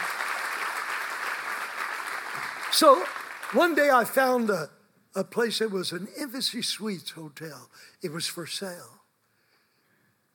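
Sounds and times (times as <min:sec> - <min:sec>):
audience clapping: 0:00.0 - 0:04.5
speech: 0:02.7 - 0:09.0.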